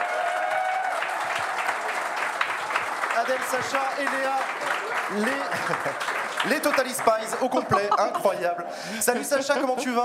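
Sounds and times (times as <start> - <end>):
applause: 0.0 - 8.0
speech: 3.2 - 10.0
laughter: 4.8 - 10.0.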